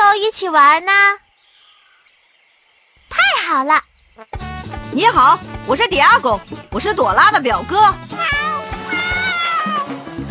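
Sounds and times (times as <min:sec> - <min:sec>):
speech: 0:00.3 - 0:01.2, 0:03.5 - 0:08.4
baby jaguar cry: 0:08.1 - 0:10.1.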